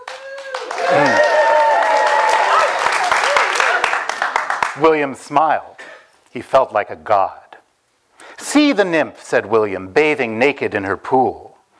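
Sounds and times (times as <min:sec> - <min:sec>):
audience whoops, hoots and cheers: 0:00.0 - 0:03.8
crowd applauding: 0:00.0 - 0:04.9
speech: 0:04.8 - 0:07.4, 0:08.5 - 0:11.5.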